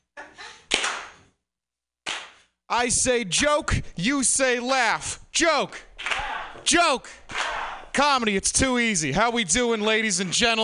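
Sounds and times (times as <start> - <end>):
slow clap: 0.6 - 1.3, 2.0 - 2.6, 6.0 - 8.0
speech: 2.7 - 7.4, 8.0 - 10.6.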